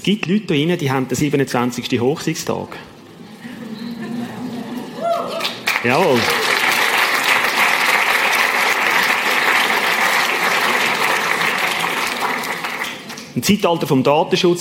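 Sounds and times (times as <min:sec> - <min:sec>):
speech: 0:00.0 - 0:03.0, 0:05.8 - 0:06.4, 0:13.4 - 0:14.5
laughter: 0:03.2 - 0:06.8
audience applause: 0:04.4 - 0:13.3.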